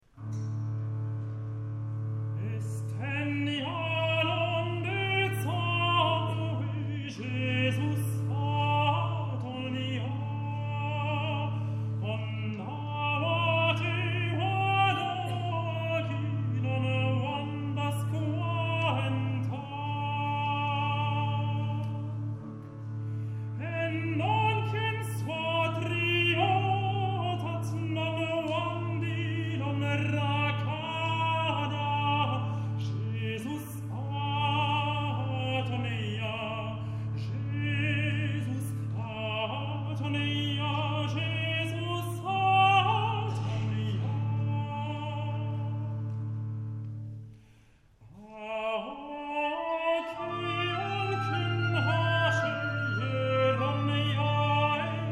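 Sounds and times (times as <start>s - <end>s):
midnight mass Christmas music: 0.0s - 55.1s.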